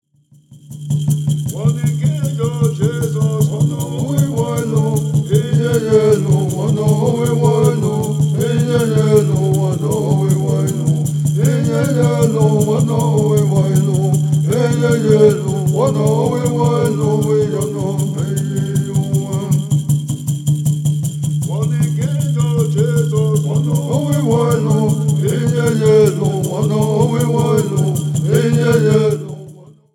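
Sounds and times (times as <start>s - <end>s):
Native American Church song: 1.5s - 29.7s.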